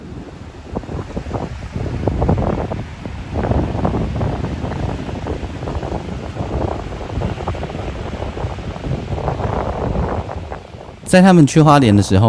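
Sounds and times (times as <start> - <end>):
strong wind at the seaside: 0.0 - 12.2
speech: 11.1 - 12.2.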